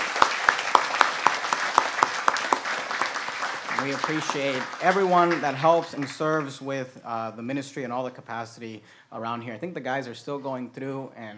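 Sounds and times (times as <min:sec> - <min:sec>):
audience applauding: 0:00.0 - 0:06.7
speech: 0:03.8 - 0:11.3.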